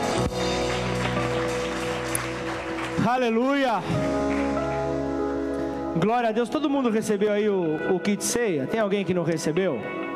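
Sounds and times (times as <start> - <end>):
audience applause: 0.0 - 5.1
speech: 3.1 - 4.3, 6.0 - 10.0.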